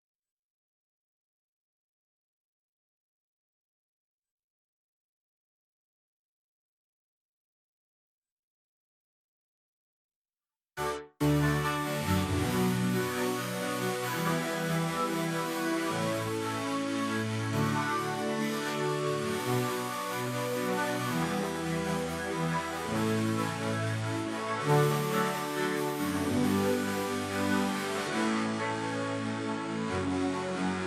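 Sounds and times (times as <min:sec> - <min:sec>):
synth: 0:10.8 - 0:30.8.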